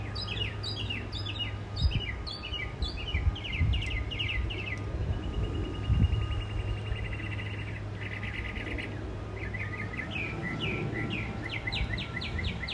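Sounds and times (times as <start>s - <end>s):
birds at a front porch: 0.0s - 12.7s.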